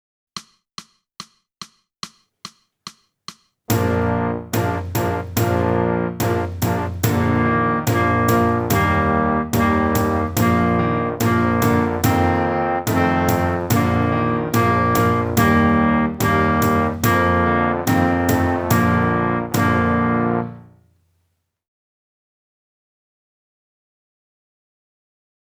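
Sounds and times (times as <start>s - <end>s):
clarinet: 3.7s - 20.8s.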